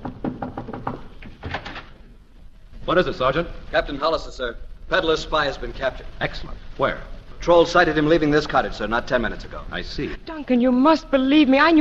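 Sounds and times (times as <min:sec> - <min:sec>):
knocking on a wooden door: 0:00.0 - 0:01.6
speech: 0:02.9 - 0:11.7.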